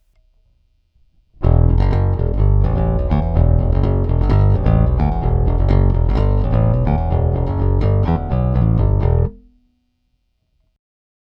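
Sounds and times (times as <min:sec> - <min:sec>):
five-string bass guitar with active passive cut: 0:01.4 - 0:09.5.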